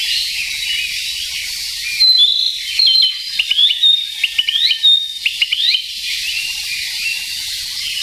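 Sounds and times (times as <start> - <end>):
Narcissus flycatcher whistling: 0.0 - 8.0.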